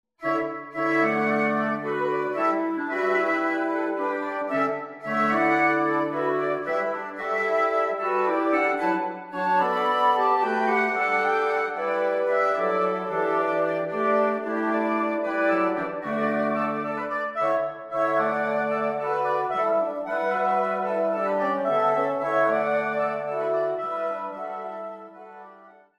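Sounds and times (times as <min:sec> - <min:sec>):
wind quartet playing a graceful andante: 0:00.2 - 0:25.9.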